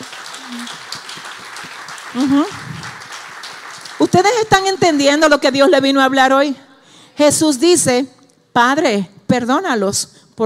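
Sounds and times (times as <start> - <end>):
audience applause: 0.0 - 5.0
speech: 2.2 - 2.6, 4.1 - 10.4.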